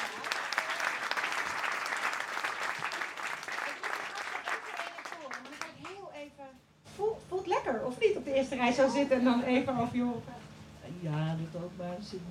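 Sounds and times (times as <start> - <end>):
applause: 0.0 - 6.2
speech: 7.9 - 12.2.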